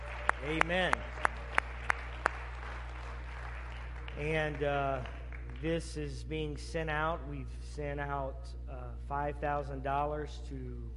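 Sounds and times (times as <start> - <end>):
audience clapping hands: 0.0 - 5.9
speech: 0.4 - 1.2, 4.2 - 10.9.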